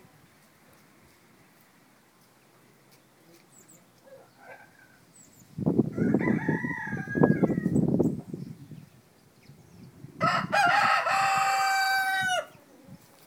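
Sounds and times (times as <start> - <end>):
rooster crowing: 5.9 - 7.8, 10.2 - 12.6.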